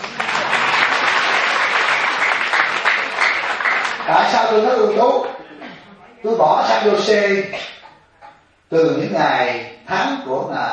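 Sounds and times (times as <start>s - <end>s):
audience applause: 0.0s - 5.1s
speech: 4.1s - 5.4s, 6.2s - 7.7s, 8.7s - 10.7s.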